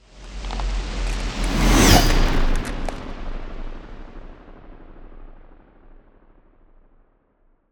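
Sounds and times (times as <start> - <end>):
ice spell cold whooshes: 1.0 - 3.3.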